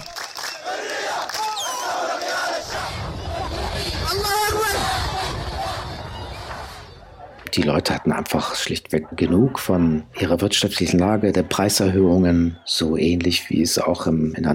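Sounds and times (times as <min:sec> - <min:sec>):
protest crowd chanting Arab Spring slogans in Sudan: 0:00.0 - 0:10.2
speech: 0:07.6 - 0:14.5.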